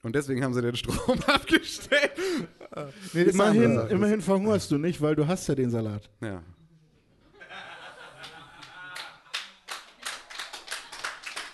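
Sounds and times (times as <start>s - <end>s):
speech: 0.0s - 6.6s
laughter: 0.8s - 3.9s, 7.2s - 9.6s
audience clapping: 8.2s - 11.5s.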